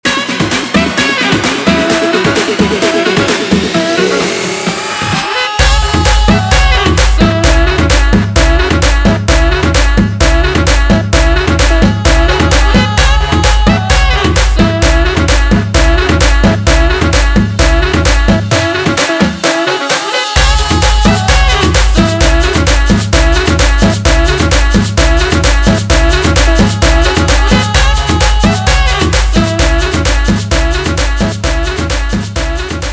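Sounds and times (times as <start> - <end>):
guaracha remix music: 0.0 - 32.9.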